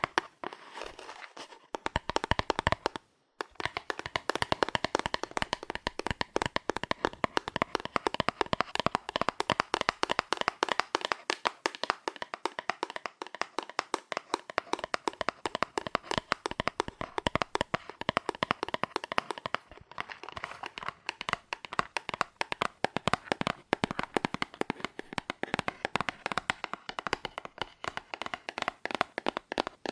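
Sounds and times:
fast aggressive cardboard tapping: 0.0s - 1.0s, 1.6s - 29.9s.

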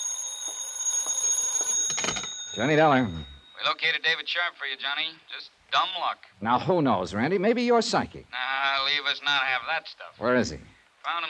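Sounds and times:
telephone ringing: 0.0s - 3.8s
speech: 2.6s - 11.2s.

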